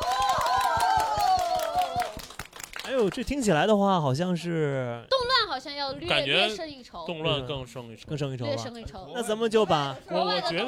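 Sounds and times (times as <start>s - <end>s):
audience clapping: 0.0s - 3.6s
speech: 3.0s - 10.6s.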